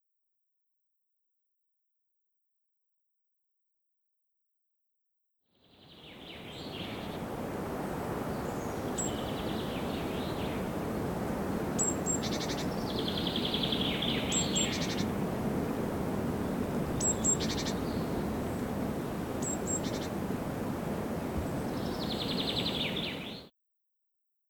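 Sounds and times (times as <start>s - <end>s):
forest birds at Devils Tower: 5.6s - 23.5s.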